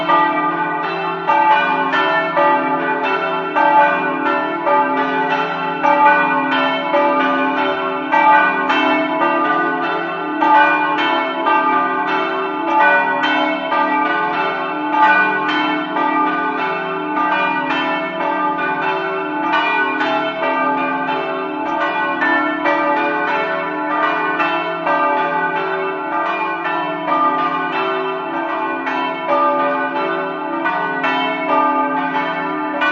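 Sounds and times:
bells ringing in Capriva: 0.0 - 32.8.

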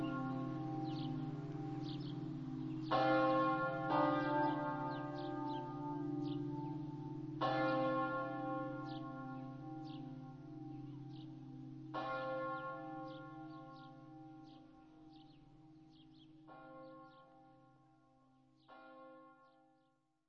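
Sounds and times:
church bells: 0.0 - 13.6.

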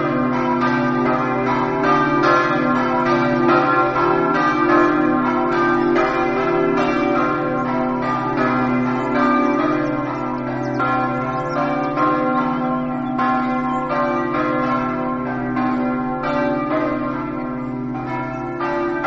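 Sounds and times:
bells ringing: 0.0 - 19.0.

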